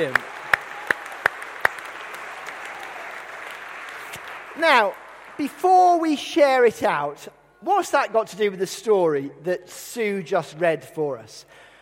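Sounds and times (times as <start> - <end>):
speech: 0.0 - 0.3, 4.6 - 11.6
audience applause: 0.0 - 6.0.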